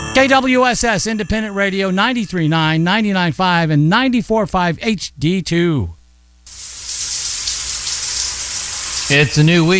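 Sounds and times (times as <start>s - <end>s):
speech: 0.2s - 6.0s, 9.1s - 9.7s
shower running: 6.5s - 9.7s.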